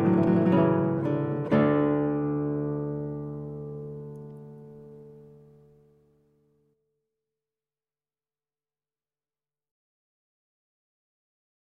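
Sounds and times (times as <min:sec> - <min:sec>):
trio sonata allegro in D major on guitar: 0:00.0 - 0:06.5.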